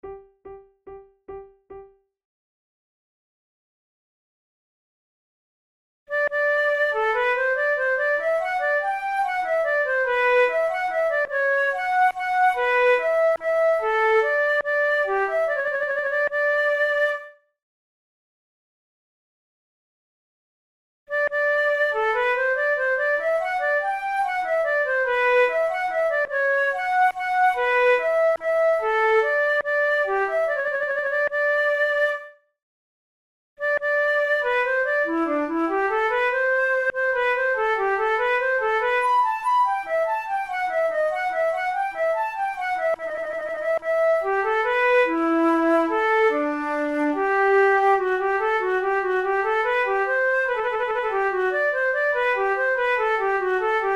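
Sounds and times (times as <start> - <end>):
baroque dance piece: 6.1 - 17.2, 21.1 - 32.2, 33.6 - 53.9.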